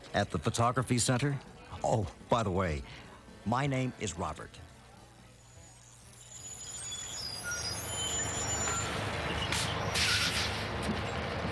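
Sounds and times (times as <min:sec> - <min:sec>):
speech: 0:00.1 - 0:04.7
bus engine rumble: 0:07.1 - 0:11.5
bus air brake hiss: 0:08.8 - 0:10.8.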